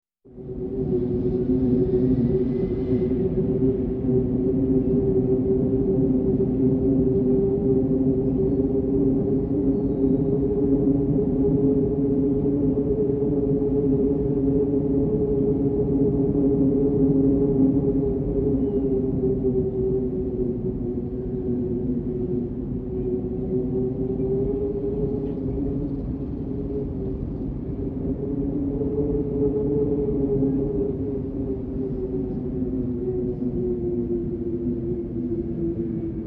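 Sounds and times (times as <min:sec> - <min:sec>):
wind: 0:00.2 - 0:36.2.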